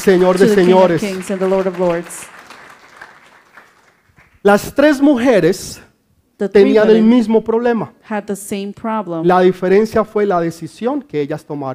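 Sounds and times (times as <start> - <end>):
speech: 0.0 - 2.4, 4.4 - 5.8, 6.4 - 11.7
audience applauding: 0.0 - 4.5.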